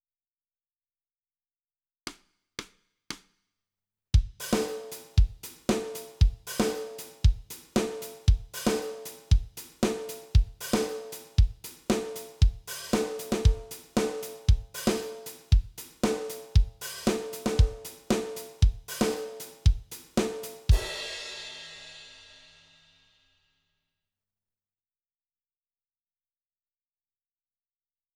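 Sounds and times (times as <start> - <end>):
drums: 4.2 - 23.2.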